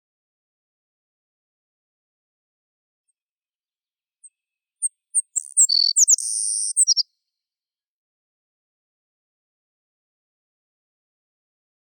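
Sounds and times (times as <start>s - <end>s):
prairie sparrow buzzy trill song: 5.2s - 7.0s.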